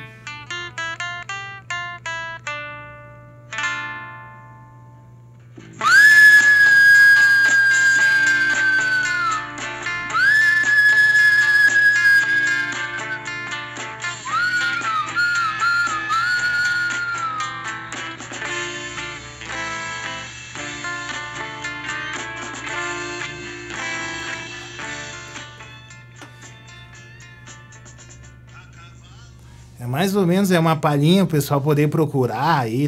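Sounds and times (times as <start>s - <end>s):
lead guitar with bending pitches: 0.0s - 27.0s
recorded rock song: 5.6s - 28.2s
speech: 30.0s - 32.8s.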